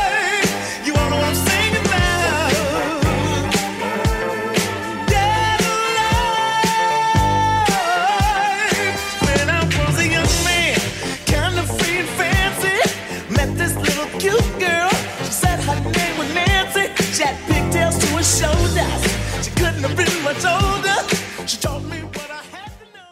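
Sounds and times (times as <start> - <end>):
eighties-style drum loop at 116 BPM: 0.0 - 23.1.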